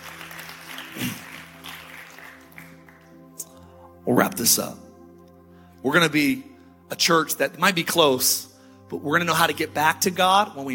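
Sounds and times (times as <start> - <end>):
audience hand clapping: 0.0 - 3.6
speech: 1.0 - 1.2, 4.1 - 4.9, 5.8 - 10.7.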